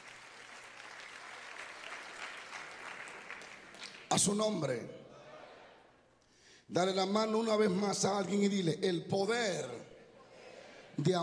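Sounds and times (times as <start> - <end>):
audience applause: 0.0 - 4.1
speech: 4.1 - 5.0, 6.7 - 9.9, 11.0 - 11.2.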